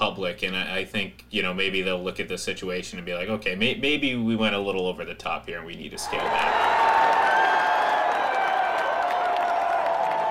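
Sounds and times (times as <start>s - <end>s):
speech: 0.2s - 7.4s
crowd cheering and clapping sound effect: 6.0s - 10.2s.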